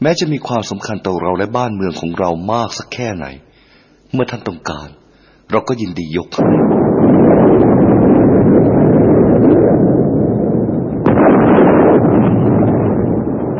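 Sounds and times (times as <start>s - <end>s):
speech: 0.0s - 3.5s, 4.1s - 8.0s
rumbling thunder: 6.4s - 13.5s.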